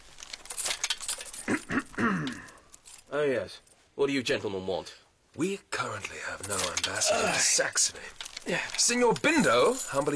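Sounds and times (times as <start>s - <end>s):
steel chainmail jingling as it is taken off: 0.0s - 3.8s, 6.4s - 10.1s
speech: 3.1s - 10.1s.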